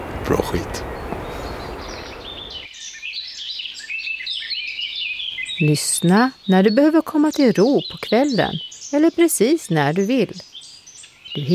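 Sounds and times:
surf: 0.0s - 2.7s
seagulls calling and crying overhead: 0.0s - 10.4s, 11.3s - 11.5s
speech: 0.3s - 1.0s, 5.6s - 10.5s, 11.4s - 11.5s.

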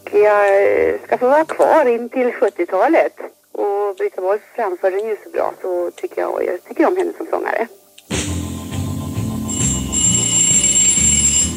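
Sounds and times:
speech: 0.1s - 8.2s
telephone ringing: 9.3s - 11.5s.

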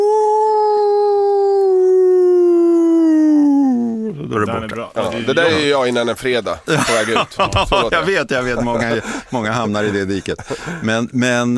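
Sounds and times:
human voice imitating a wolf howl: 0.0s - 4.3s
laughter: 4.2s - 11.2s
speech: 4.6s - 11.5s.

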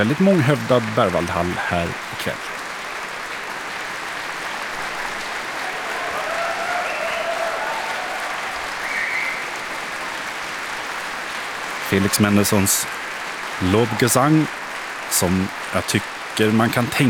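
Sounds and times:
speech: 0.0s - 2.6s, 11.9s - 13.0s, 13.6s - 17.0s
concert hall audience applause: 0.0s - 17.0s
faint whistles or cheers: 5.3s - 9.9s.

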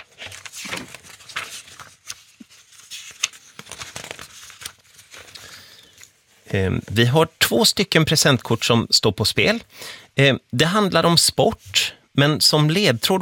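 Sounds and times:
pages flipping in a binder: 0.0s - 7.0s
speech: 6.5s - 13.2s.

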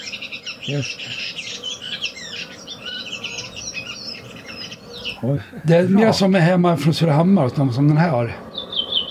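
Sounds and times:
redwing song with chattering, angry call: 0.0s - 7.6s, 8.4s - 9.0s
hiss: 0.0s - 9.0s
speech: 0.7s - 1.2s, 5.2s - 8.5s.

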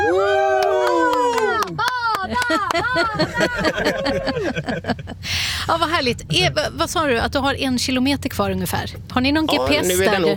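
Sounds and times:
family cheering together inside a car: 0.0s - 4.5s
laughter: 1.6s - 5.3s
speech: 2.5s - 10.3s.

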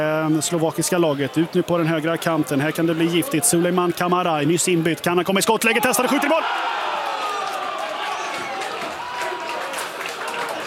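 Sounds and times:
speech: 0.3s - 6.9s
stadium crowd roaring and cheering: 0.3s - 10.6s
scattered clapping: 7.0s - 10.6s.

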